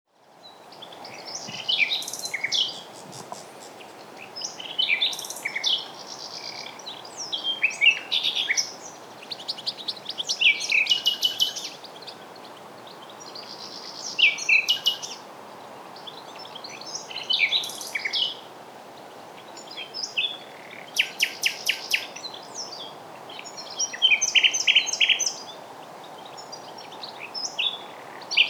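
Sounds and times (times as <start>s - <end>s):
common nightingale song: 0.2s - 15.2s, 19.4s - 28.4s
background hiss: 0.2s - 28.4s.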